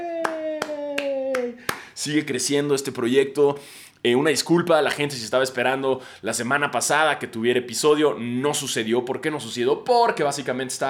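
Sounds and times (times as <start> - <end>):
sharp hand claps: 0.0 - 2.0
speech: 1.4 - 10.8.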